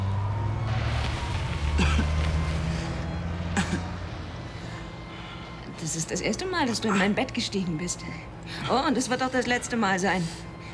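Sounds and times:
Mini Cooper engine starting and driving away: 0.0 - 4.6
speech: 1.8 - 2.1, 5.9 - 10.5.

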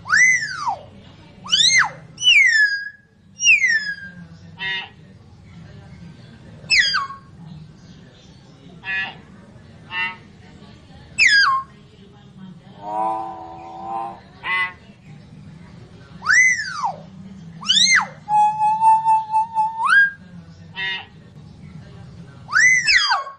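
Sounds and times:
lovebird calls used as a lure: 0.1 - 0.9, 1.5 - 5.0, 6.7 - 7.4, 9.9 - 10.3, 11.2 - 11.7, 12.8 - 14.8, 16.2 - 17.0, 17.6 - 20.2, 22.5 - 23.3.

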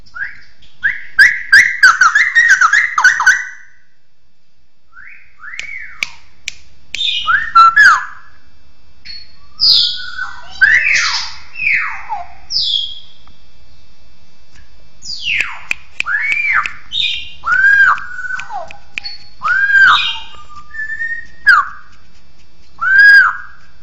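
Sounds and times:
bird song of whistled phrases: 0.0 - 3.8, 4.9 - 6.1, 7.0 - 8.4, 9.0 - 13.8, 15.0 - 21.8, 22.8 - 23.6.

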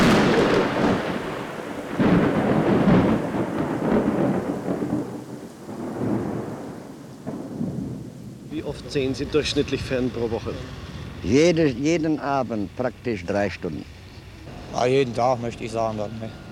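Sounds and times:
deep thunder rolling: 0.0 - 11.3
steady rain: 0.0 - 16.5
speech: 8.8 - 14.0, 14.8 - 16.4.

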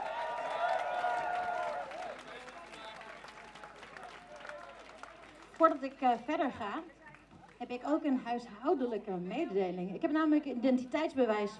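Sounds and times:
audience applause: 0.0 - 6.4
speech: 5.6 - 7.0, 7.6 - 11.5.

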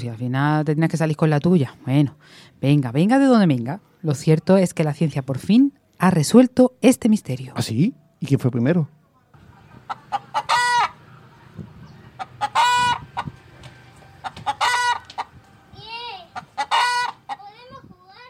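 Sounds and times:
speech: 0.0 - 9.0
chickens clucking: 9.4 - 17.8
rooster-like crowing call: 10.0 - 15.3, 16.5 - 17.3.

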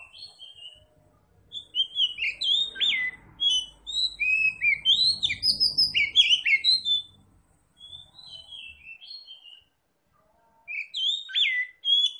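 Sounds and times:
oriental magpie-robin singing: 0.0 - 0.9, 1.5 - 7.2, 7.8 - 9.7, 10.7 - 12.1.

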